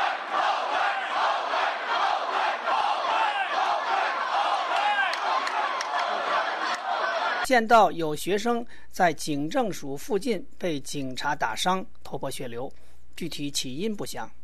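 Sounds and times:
protesters outside a government building in Taipei shouting slogans: 0:00.0 - 0:07.5
speech: 0:07.5 - 0:14.4.

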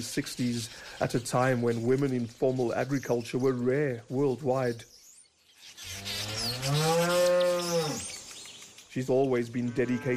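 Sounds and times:
speech: 0:00.0 - 0:04.9, 0:09.0 - 0:10.1
Jersey cow mooing: 0:06.2 - 0:08.0, 0:09.7 - 0:10.1.

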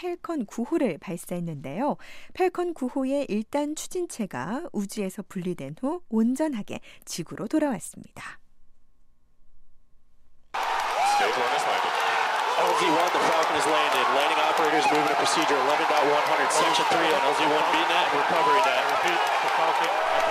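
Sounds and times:
speech: 0:00.0 - 0:08.4, 0:12.8 - 0:20.3
SpaceX staff cheering at a rocket landing: 0:10.6 - 0:20.3.

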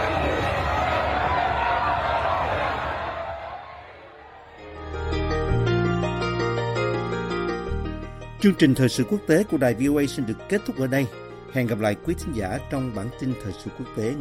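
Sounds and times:
crowd cheering and shouting with joy: 0:00.0 - 0:04.8
steady music with sustained tones: 0:04.6 - 0:14.1
speech: 0:08.4 - 0:14.1.

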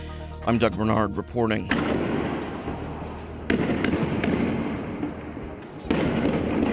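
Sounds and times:
speech: 0:00.5 - 0:02.1
Israeli police tear gas launchers firing in Bethlehem: 0:01.7 - 0:06.7.

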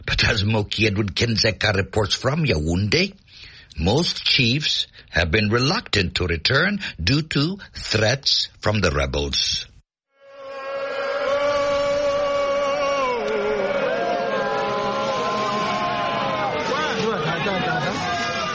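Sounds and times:
speech: 0:00.2 - 0:09.7
crowd shouting in the town of Kumbu: 0:10.2 - 0:18.5
crowd applauding: 0:11.2 - 0:18.5.

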